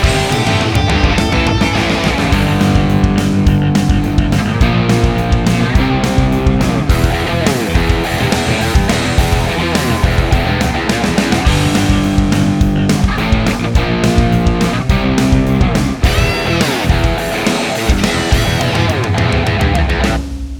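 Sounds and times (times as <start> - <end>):
rock music: 0.0 - 20.5.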